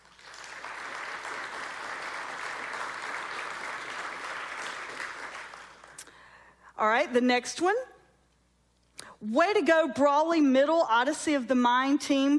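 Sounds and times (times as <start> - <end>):
audience clapping: 0.0 - 6.1
speech: 6.8 - 7.9, 9.2 - 12.3.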